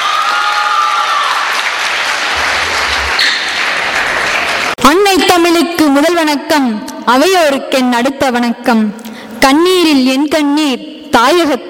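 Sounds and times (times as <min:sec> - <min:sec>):
crowd applauding a poet: 0:00.0 - 0:04.8
speech: 0:05.6 - 0:11.6.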